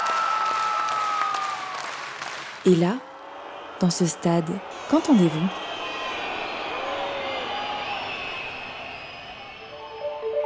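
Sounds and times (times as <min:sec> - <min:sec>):
concert audience applause: 0:00.0 - 0:10.4
speech: 0:02.6 - 0:03.1, 0:03.8 - 0:05.7
long high whistle from a concert audience: 0:05.5 - 0:10.4.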